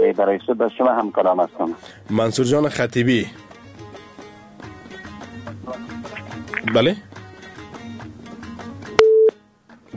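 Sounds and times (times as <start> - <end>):
speech: 0.1 - 3.4, 6.6 - 7.1
busy signal after a dropped phone call: 9.0 - 9.4
phone line click: 9.0 - 9.4.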